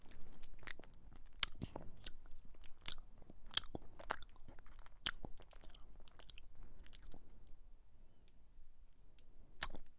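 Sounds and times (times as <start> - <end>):
crunchy chewing on chocolate lolly and sweets: 0.0 - 7.3.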